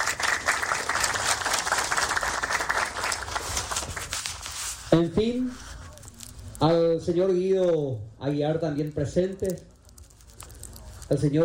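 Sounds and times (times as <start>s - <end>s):
crowd applause: 0.0s - 4.2s
speech: 4.9s - 5.6s, 6.6s - 9.7s, 11.1s - 11.4s.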